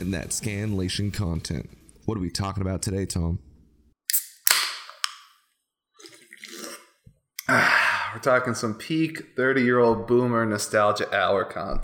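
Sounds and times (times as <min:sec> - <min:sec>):
speech: 0:00.0 - 0:03.5, 0:07.6 - 0:11.8
drink can cracking open: 0:04.1 - 0:05.3
person sipping a drink from a can: 0:06.0 - 0:07.6.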